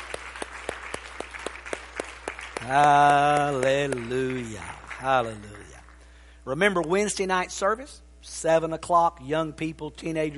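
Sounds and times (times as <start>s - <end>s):
audience clapping in rhythm in a roomy hall: 0.0s - 6.1s
speech: 2.6s - 5.6s, 6.4s - 10.3s.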